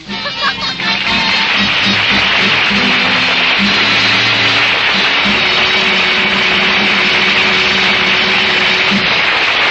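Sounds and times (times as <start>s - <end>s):
laughter: 0.0s - 3.5s
outboard motor engine running: 1.5s - 9.6s.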